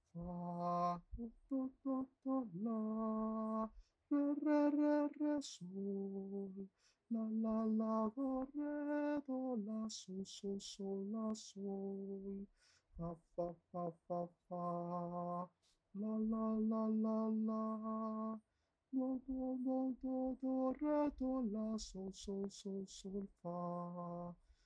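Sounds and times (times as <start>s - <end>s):
singing voice: 0.0s - 18.4s, 19.0s - 24.6s.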